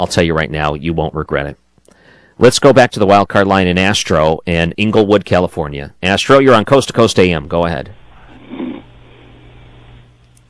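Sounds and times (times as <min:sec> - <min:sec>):
speech: 0:00.0 - 0:01.6, 0:02.4 - 0:08.9
caller snoring on phone line: 0:08.1 - 0:10.1.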